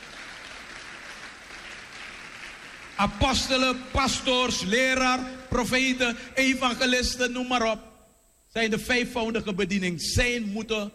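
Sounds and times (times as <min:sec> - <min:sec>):
audience applause: 0:00.0 - 0:03.1
speech: 0:03.0 - 0:07.9, 0:08.5 - 0:10.9.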